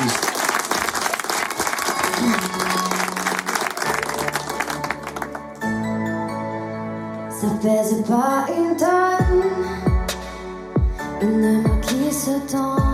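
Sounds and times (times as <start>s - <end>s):
audience applause: 0.0s - 5.7s
tonal music: 1.4s - 11.9s
speech: 7.6s - 9.2s, 12.2s - 12.8s.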